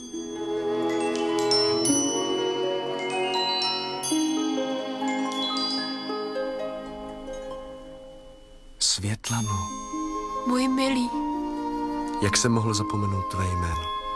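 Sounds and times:
small bell ringing: 0.0 - 8.6, 9.3 - 11.2
speech: 9.3 - 11.3, 12.2 - 14.0.

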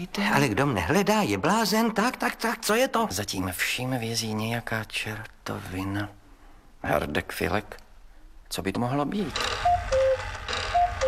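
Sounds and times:
speech: 0.0 - 6.2, 6.8 - 7.8, 8.5 - 9.7
cuckoo clock calling: 9.3 - 11.0.

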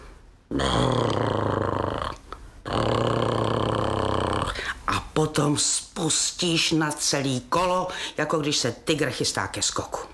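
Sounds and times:
speech: 0.5 - 1.4, 5.2 - 10.1
voice imitating horse snoring in stable: 0.5 - 4.6.

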